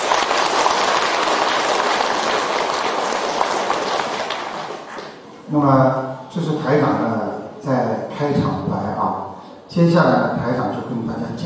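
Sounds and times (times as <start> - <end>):
audience applause: 0.0 - 5.2
speech: 5.5 - 9.0, 9.7 - 11.4.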